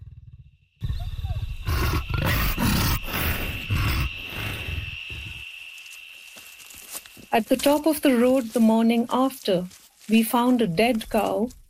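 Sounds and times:
faint high hum: 0:00.8 - 0:09.4
leopard giving a rasping sawing cough: 0:01.6 - 0:04.0
speech: 0:07.3 - 0:11.6.

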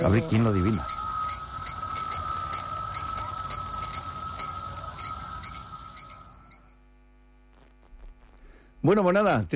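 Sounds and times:
speech: 0:00.0 - 0:01.0, 0:08.8 - 0:09.5
cicada buzzing: 0:00.0 - 0:06.9
crickets chirping: 0:00.0 - 0:06.9.

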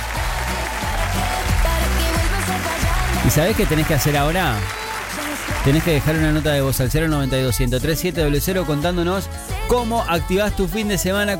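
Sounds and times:
faint whoops or tonal cheers: 0:00.0 - 0:06.2
crowd applauding: 0:00.0 - 0:07.2
speech: 0:03.3 - 0:04.8, 0:05.6 - 0:11.3.

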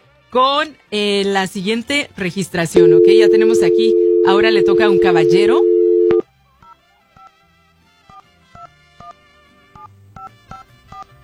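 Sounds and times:
speech: 0:00.3 - 0:05.7
faint low hum: 0:02.8 - 0:06.2
telephone keypad DTMF tones dialing a number: 0:02.8 - 0:06.2.

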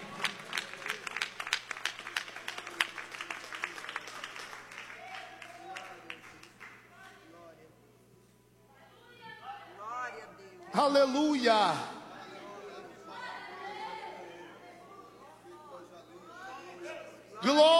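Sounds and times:
audience applause: 0:00.0 - 0:06.8
speech: 0:10.8 - 0:11.9.

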